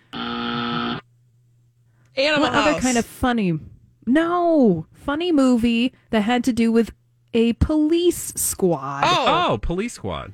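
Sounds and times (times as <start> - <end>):
game show wrong-answer buzzer: 0.0 - 1.0
speech: 2.2 - 10.3.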